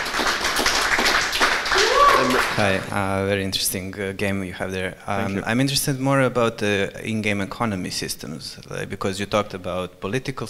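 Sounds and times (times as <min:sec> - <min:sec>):
audience round of applause: 0:00.0 - 0:02.9
speech: 0:02.3 - 0:10.4.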